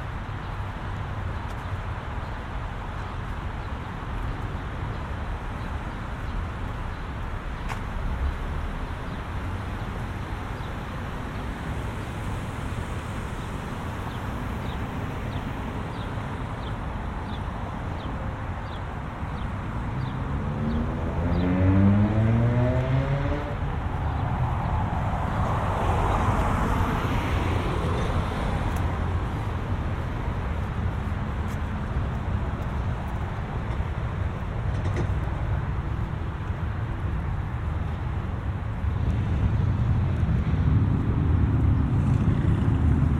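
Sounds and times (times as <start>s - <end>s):
low traffic rumble in the suburbs: 0.0s - 43.1s
vehicle passing: 19.8s - 34.2s, 35.7s - 43.1s.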